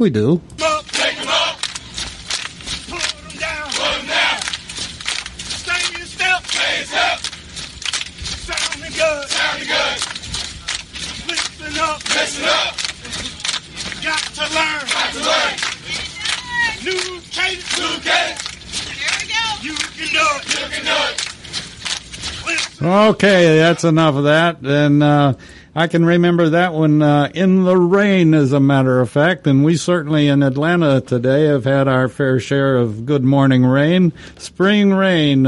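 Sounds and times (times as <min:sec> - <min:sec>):
speech: 0:00.0 - 0:00.6, 0:11.7 - 0:12.8, 0:14.1 - 0:15.7, 0:16.8 - 0:18.4, 0:19.6 - 0:21.2, 0:22.8 - 0:35.4
group of voices chanting a military cadence call: 0:00.6 - 0:01.8, 0:02.9 - 0:04.6, 0:05.8 - 0:07.3, 0:08.5 - 0:10.1, 0:11.6 - 0:13.2, 0:14.1 - 0:21.3
marching footsteps crunching: 0:00.6 - 0:24.2.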